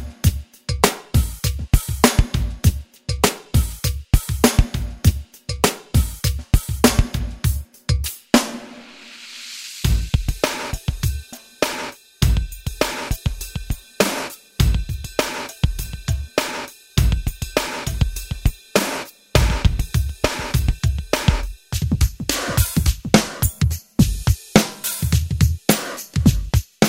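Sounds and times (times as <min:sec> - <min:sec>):
pop drums: 0:00.0 - 0:26.8.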